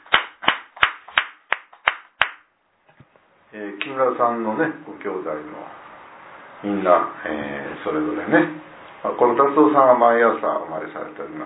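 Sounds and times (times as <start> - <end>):
applause: 0.1 - 2.4
speech: 3.5 - 5.8, 6.6 - 11.4.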